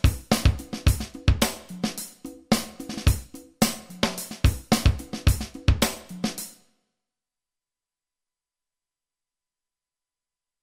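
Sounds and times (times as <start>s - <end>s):
fast funk percussion: 0.0s - 6.6s.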